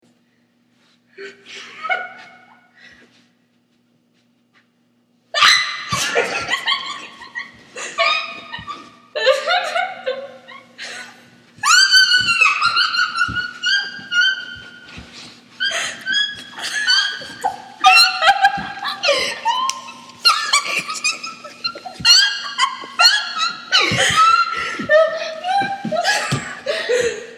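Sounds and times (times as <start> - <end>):
laughing song: 6.0 - 14.8, 15.6 - 27.3.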